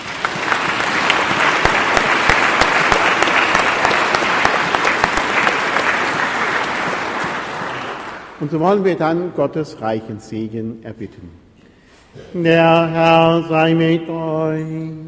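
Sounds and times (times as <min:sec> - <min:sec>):
applause: 0:00.0 - 0:08.6
speech: 0:08.4 - 0:11.4, 0:12.1 - 0:15.0.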